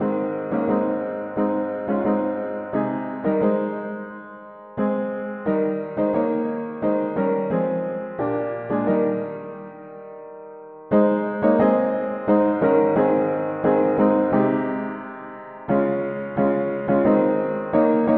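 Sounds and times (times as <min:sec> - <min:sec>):
mono piano: 0:00.0 - 0:18.1.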